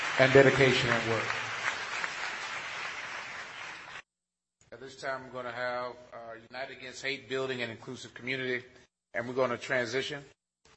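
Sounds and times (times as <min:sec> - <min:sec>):
crowd applauding with hand clapping: 0:00.0 - 0:04.0
speech: 0:00.2 - 0:01.4, 0:04.9 - 0:10.4.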